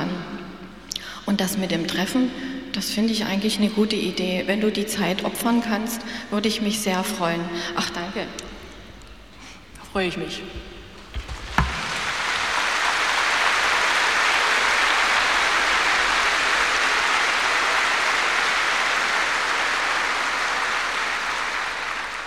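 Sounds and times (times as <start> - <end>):
speech: 1.3 - 8.5, 10.0 - 10.7
audience applause: 11.2 - 22.2.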